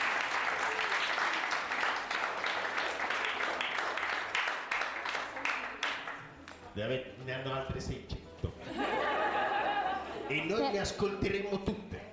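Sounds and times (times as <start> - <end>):
audience applause: 0.0 - 6.3
speech: 6.8 - 9.0, 10.3 - 12.0
laughter: 8.4 - 10.8.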